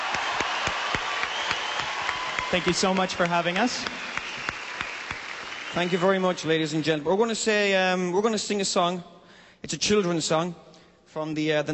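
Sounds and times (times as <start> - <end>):
audience applause: 0.0 - 7.0
speech: 2.5 - 4.1, 5.8 - 11.7.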